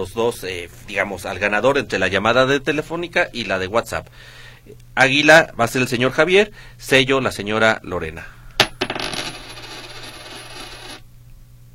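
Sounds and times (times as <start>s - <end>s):
speech: 0.0s - 8.4s
tossed coin landing and rattling: 8.6s - 11.0s.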